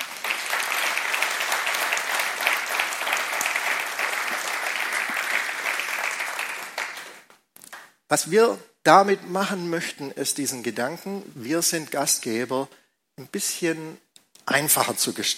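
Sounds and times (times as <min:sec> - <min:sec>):
audience applause: 0:00.0 - 0:07.3
speech: 0:08.1 - 0:15.3.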